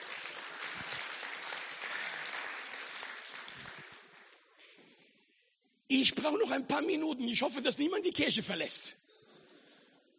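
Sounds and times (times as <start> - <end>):
audience applause: 0.0 - 4.4
speech: 5.9 - 9.1.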